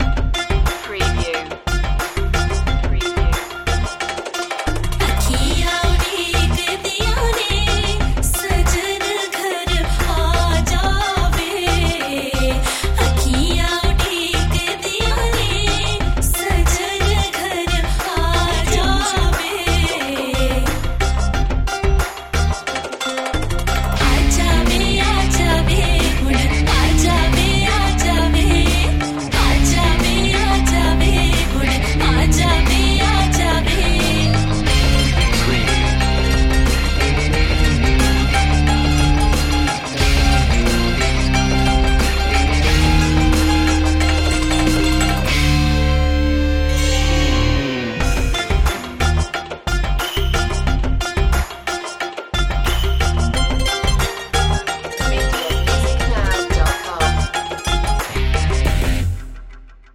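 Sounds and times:
sitar: 0:00.0 - 0:59.2.

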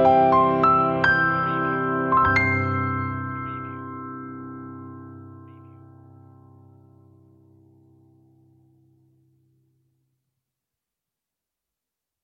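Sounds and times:
piano: 0:00.0 - 0:09.1.

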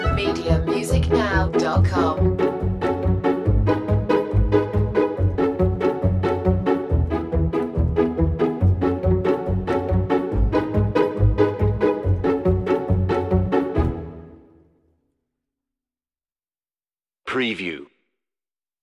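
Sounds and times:
strings: 0:00.0 - 0:14.4.

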